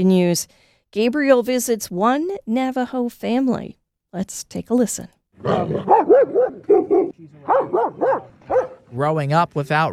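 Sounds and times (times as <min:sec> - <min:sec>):
speech: 0:00.0 - 0:09.9
dog barking: 0:05.5 - 0:08.8.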